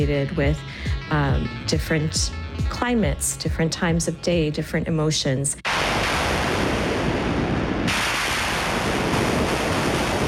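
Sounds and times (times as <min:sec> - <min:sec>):
speech: 0:00.0 - 0:05.6
synthesized thunder sounds opening a raga: 0:05.7 - 0:10.2.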